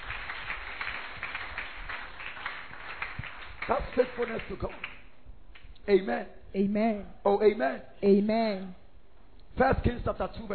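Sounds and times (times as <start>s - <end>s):
audience clapping: 0.0s - 5.7s
speech: 3.7s - 4.9s, 5.8s - 8.8s, 9.6s - 10.5s.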